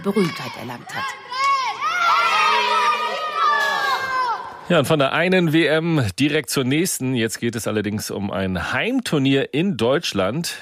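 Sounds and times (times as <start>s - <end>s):
speech: 0.0s - 1.3s, 4.7s - 10.5s
children cheering while doing the stadium wave: 0.0s - 4.6s.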